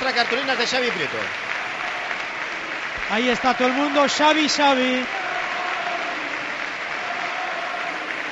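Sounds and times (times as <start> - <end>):
stadium crowd applauding: 0.0 - 8.2
speech: 0.1 - 1.5, 3.1 - 5.2.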